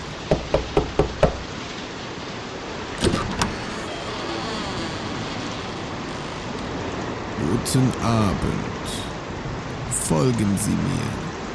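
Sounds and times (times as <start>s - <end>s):
steady hiss: 0.0s - 11.5s
heavy iron door knocker striking a castle door: 0.3s - 1.5s
dull thuds: 0.3s - 1.6s
speech: 7.6s - 9.1s, 10.1s - 11.2s.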